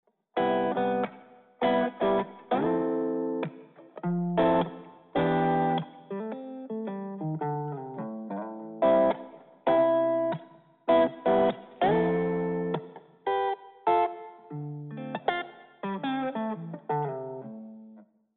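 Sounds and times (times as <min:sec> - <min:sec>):
jazzy guitar through a guitar amp: 0:00.4 - 0:18.0.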